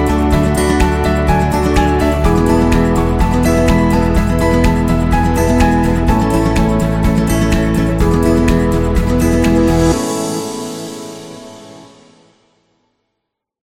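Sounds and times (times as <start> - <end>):
happy uplifting acoustic guitar music: 0.0 - 10.7.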